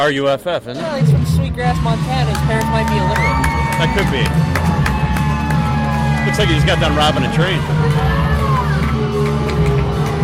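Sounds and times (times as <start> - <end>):
speech: 0.0 - 4.8, 6.3 - 8.3
crowd booing a fighter at a fight event: 2.3 - 10.2.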